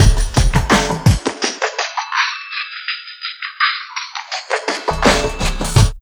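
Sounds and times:
dark filtered trip hop music: 0.0 - 2.2, 4.2 - 5.9.

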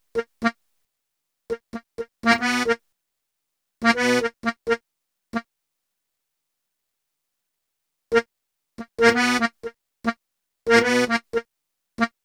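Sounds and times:
accordion: 0.1 - 0.5, 1.5 - 2.8, 3.8 - 4.8, 8.1 - 12.2.

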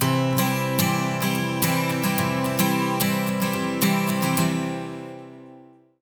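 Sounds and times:
acoustic guitar loop: 0.0 - 5.9.

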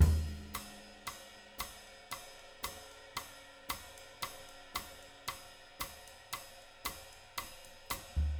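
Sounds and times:
live cha-cha drum rhythm: 0.0 - 8.3.

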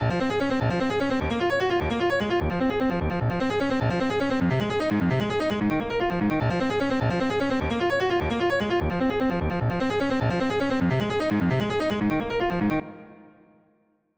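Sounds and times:
artcore piano loop: 0.0 - 13.2.

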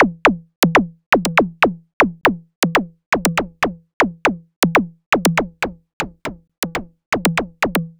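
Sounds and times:
subtractive synth beat: 1.5 - 7.9.

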